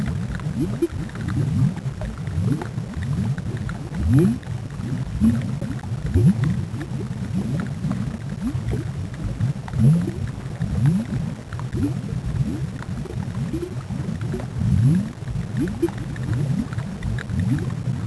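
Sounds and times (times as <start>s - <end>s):
deep bubbles: 0.0s - 18.0s.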